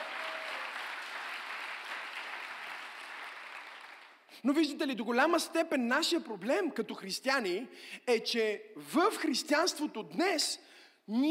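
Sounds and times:
audience applause: 0.0s - 4.3s
speech: 4.4s - 11.2s.

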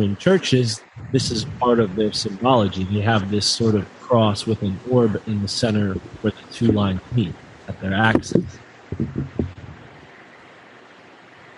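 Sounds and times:
speech: 0.0s - 9.4s
rain hissing: 0.0s - 11.5s
low thumps: 0.8s - 3.8s, 5.7s - 10.0s.

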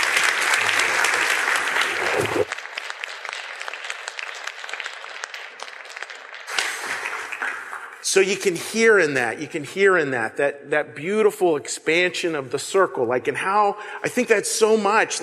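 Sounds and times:
audience applause: 0.0s - 8.1s
speech: 8.2s - 15.2s.

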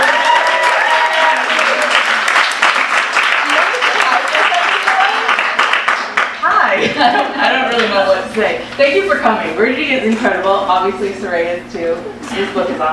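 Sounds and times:
audience applause: 0.0s - 6.7s
laughter: 6.6s - 7.9s
speech: 8.4s - 12.9s.

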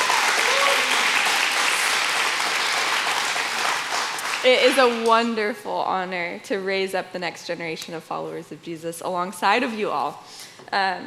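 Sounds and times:
audience round of applause: 0.0s - 5.1s
speech: 4.4s - 11.0s.

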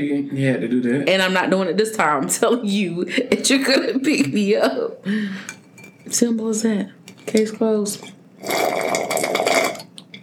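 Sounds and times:
speech: 0.0s - 8.2s
person sipping a drink: 8.4s - 10.1s.

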